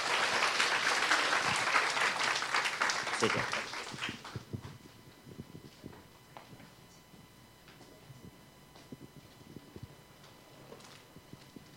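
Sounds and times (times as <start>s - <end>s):
audience clapping in welcome: 0.0s - 4.5s
speech: 3.2s - 3.6s.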